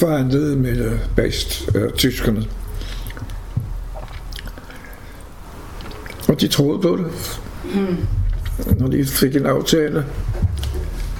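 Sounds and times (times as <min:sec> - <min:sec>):
speech: 0:00.0 - 0:02.6, 0:06.3 - 0:10.6
chewing and biting on food during a meal: 0:02.5 - 0:06.4, 0:08.1 - 0:08.7.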